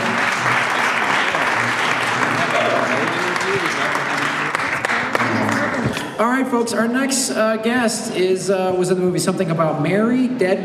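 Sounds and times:
audience applause: 0.0 - 6.1
faint murmur of voices: 0.0 - 10.6
speech: 6.3 - 10.6.

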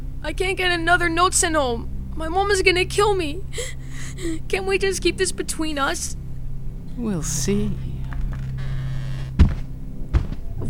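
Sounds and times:
steady low hum: 0.0 - 10.6
speech: 0.2 - 6.2, 7.0 - 7.9
door swinging shut with a dull thud: 8.1 - 10.6.

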